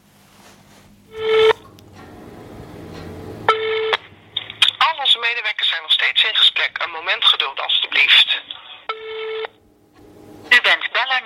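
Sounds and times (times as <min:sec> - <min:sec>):
electronic tone bursts: 0:01.1 - 0:01.7, 0:02.6 - 0:04.8
recorded telephone hold message automated voice: 0:04.6 - 0:08.8, 0:10.5 - 0:11.2.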